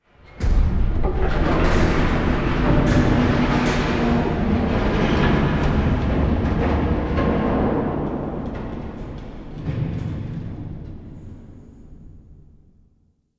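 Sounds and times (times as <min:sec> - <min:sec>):
staircase machinery stinger: 0:00.3 - 0:08.6.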